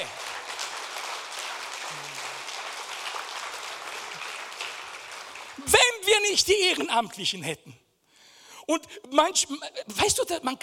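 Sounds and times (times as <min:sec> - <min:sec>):
audience applause: 0:00.0 - 0:05.9
speech: 0:05.6 - 0:07.8, 0:08.7 - 0:10.6.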